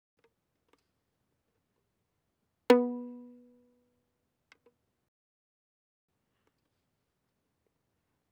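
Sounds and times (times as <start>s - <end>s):
violin pizzicato fortissimo on the G string: 2.7s - 3.5s.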